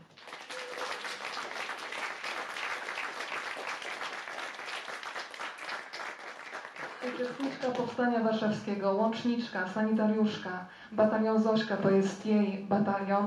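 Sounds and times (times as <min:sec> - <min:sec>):
warm audience applause: 0:00.0 - 0:08.0
speech: 0:07.1 - 0:13.2.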